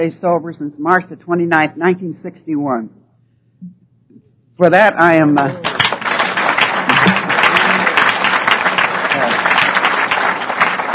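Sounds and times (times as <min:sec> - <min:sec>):
speech: 0:00.0 - 0:03.0, 0:04.6 - 0:05.8
audience applause at a talk about alcoholism and long-term sobriety: 0:05.6 - 0:10.9.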